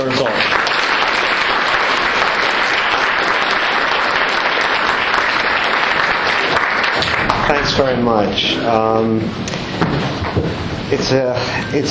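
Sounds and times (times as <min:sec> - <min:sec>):
audience applause: 0:00.0 - 0:08.9
speech: 0:07.8 - 0:11.9.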